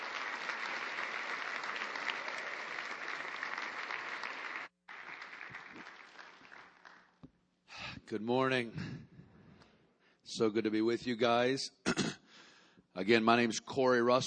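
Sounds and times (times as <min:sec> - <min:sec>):
audience applause welcoming a speaker at a Sunday morning gathering: 0:00.0 - 0:07.2
speech: 0:08.1 - 0:09.1, 0:10.4 - 0:12.2, 0:13.0 - 0:14.2.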